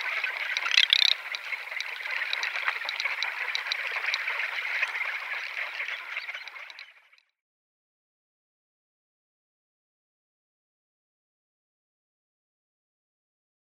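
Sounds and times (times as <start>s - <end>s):
garganey rattle: 0.2s - 5.6s.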